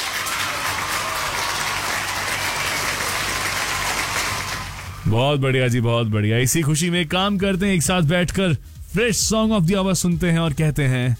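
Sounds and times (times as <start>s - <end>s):
crowd applause: 0.0s - 5.2s
speech: 5.1s - 11.1s.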